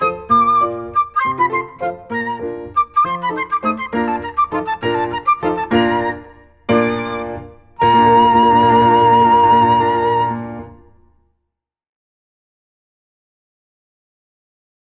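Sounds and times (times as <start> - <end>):
flute: 0.0 - 11.1.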